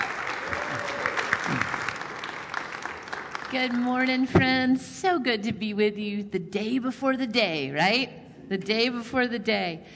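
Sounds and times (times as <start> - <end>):
audience applause welcoming a preacher: 0.0 - 3.9
speech: 3.5 - 9.9.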